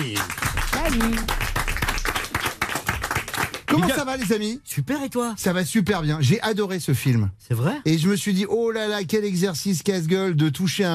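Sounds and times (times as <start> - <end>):
audience applause: 0.0 - 4.4
speech: 0.1 - 1.4, 3.8 - 10.9.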